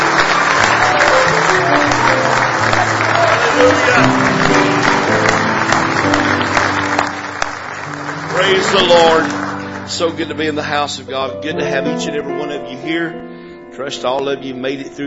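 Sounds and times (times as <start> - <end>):
audience applause and hand clapping: 0.0 - 10.7
speech: 3.6 - 4.3, 8.6 - 15.0.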